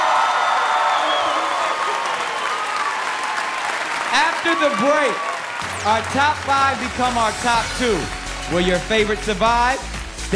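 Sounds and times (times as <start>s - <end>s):
studio audience cheering and whoops: 0.0s - 7.4s
studio audience applause: 0.0s - 9.2s
speech: 4.4s - 10.3s.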